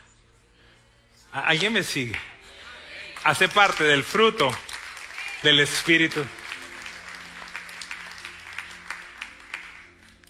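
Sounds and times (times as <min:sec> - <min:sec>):
speech: 0:01.3 - 0:02.3, 0:03.2 - 0:04.6, 0:05.4 - 0:06.4
audience applause: 0:03.2 - 0:10.2.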